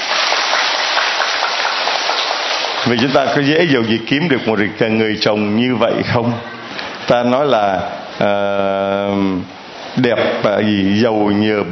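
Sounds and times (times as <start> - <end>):
crowd applause: 0.0 - 3.5
speech: 2.9 - 11.7.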